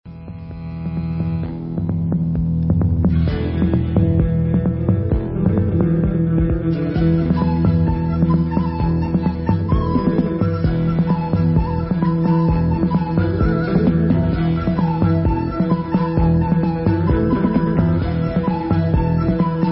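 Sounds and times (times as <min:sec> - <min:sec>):
dabke instrumental music: 0:00.1 - 0:19.7.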